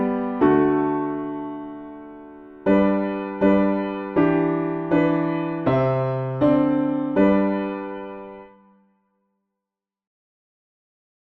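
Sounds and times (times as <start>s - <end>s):
piano backing: 0.0s - 8.7s.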